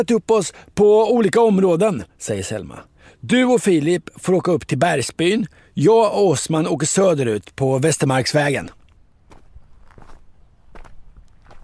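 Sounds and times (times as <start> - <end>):
speech: 0.0 - 8.8
footsteps on a hard surface walking toward a car: 9.3 - 11.6.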